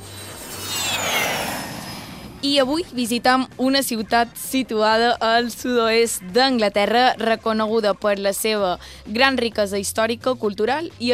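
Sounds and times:
high whining tones: 0:00.0 - 0:05.9
jet-engine roar airplane sound effect: 0:00.0 - 0:06.2
low hum: 0:00.0 - 0:07.0
speech: 0:02.4 - 0:11.1.

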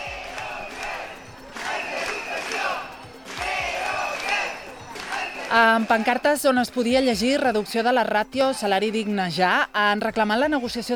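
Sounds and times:
protesting workers chanting outside parliament: 0:00.0 - 0:07.6
speech: 0:05.5 - 0:10.9.

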